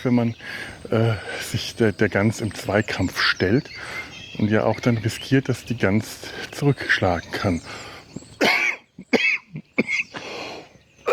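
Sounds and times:
speech: 0:00.0 - 0:08.5
person coughing after choking on something: 0:08.4 - 0:10.1.

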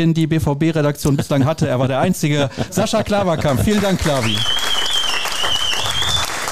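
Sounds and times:
speech: 0:00.0 - 0:04.7
laughter: 0:01.1 - 0:04.5
audience applause: 0:02.7 - 0:06.5.

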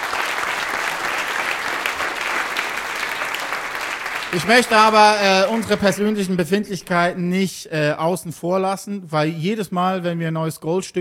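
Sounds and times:
audience applause: 0:00.0 - 0:06.4
speech: 0:04.3 - 0:10.9.

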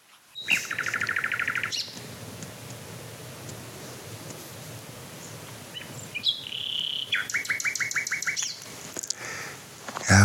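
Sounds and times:
nightingale singing: 0:00.3 - 0:02.2, 0:05.1 - 0:08.7.

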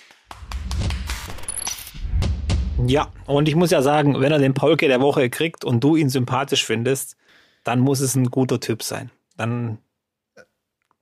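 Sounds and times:
applause sound effect of crowd clapping: 0:00.0 - 0:01.9
speech: 0:02.8 - 0:10.5.

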